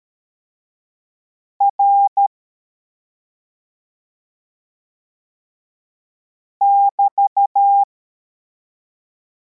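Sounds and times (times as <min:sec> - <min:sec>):
CW morse code beeps: 0:01.6 - 0:02.3, 0:06.6 - 0:07.9.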